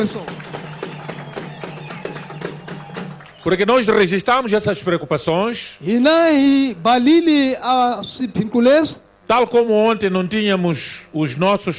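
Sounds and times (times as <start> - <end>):
speech: 0.0 - 0.4, 3.4 - 11.7
audience applause: 0.0 - 4.2.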